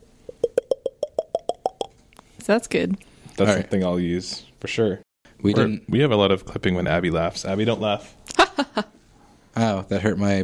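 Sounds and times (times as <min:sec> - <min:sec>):
voice imitating liquid pouring with mouth plops: 0:00.3 - 0:02.3
speech: 0:02.5 - 0:08.9, 0:09.7 - 0:10.4.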